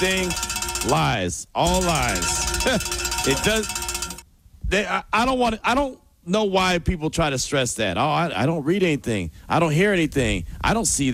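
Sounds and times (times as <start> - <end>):
speech: 0.0 - 3.8, 4.7 - 11.1
bell ringing: 0.0 - 4.3.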